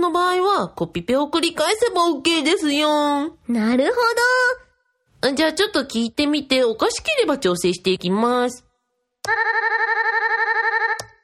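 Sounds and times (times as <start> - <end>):
speech: 0.0 - 4.6, 5.2 - 9.8
looped electronic buzzer tone: 9.3 - 11.2.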